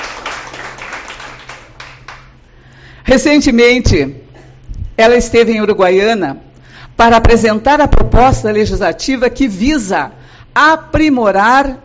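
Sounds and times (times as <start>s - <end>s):
crowd applauding: 0.0s - 2.4s
speech: 3.1s - 4.2s, 5.0s - 11.8s.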